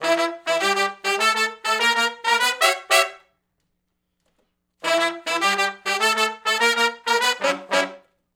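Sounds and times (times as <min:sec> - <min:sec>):
R&B horn riff in E minor, unison to harmony: 0:00.0 - 0:03.3, 0:04.8 - 0:08.1.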